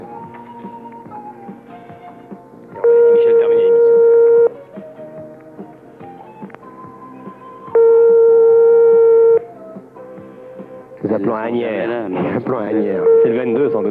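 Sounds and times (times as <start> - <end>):
telephone ringing tone: 2.8 - 4.6, 7.7 - 9.5, 13.0 - 13.8
speech: 11.4 - 13.8.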